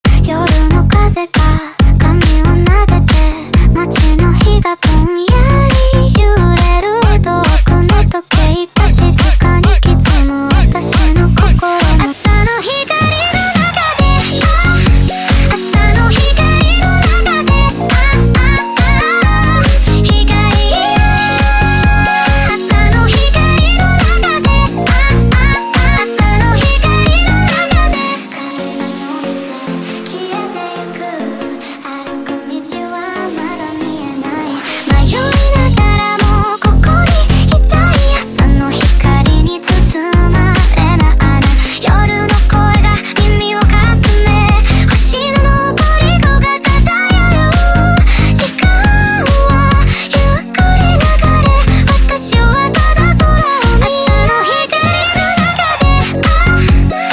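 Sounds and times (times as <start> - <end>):
sped-up Douyin phonk remix: 0.0 - 57.1.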